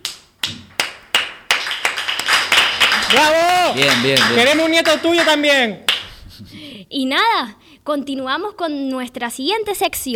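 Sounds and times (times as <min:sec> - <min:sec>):
applause for a departing guest: 0:00.4 - 0:06.1
speech: 0:03.1 - 0:10.1.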